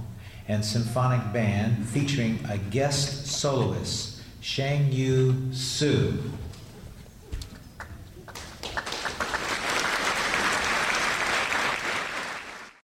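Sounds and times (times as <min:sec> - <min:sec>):
speech: 0:00.5 - 0:06.5
audience applause: 0:07.8 - 0:12.8.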